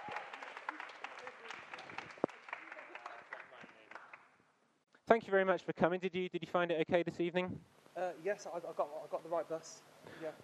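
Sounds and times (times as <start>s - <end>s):
crowd applauding: 0.0s - 4.4s
speech: 5.1s - 10.4s.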